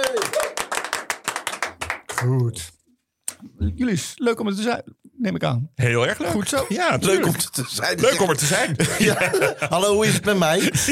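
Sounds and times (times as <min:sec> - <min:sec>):
applause from two people clapping: 0:00.0 - 0:02.6
speech: 0:02.2 - 0:02.8, 0:03.4 - 0:10.9
laughter: 0:06.4 - 0:10.9.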